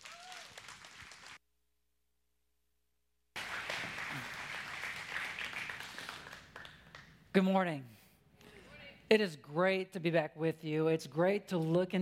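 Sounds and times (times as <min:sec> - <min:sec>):
church congregation applauding a guest speaker: 0:00.0 - 0:01.4, 0:03.4 - 0:07.2
speech: 0:07.4 - 0:08.0, 0:09.1 - 0:11.9.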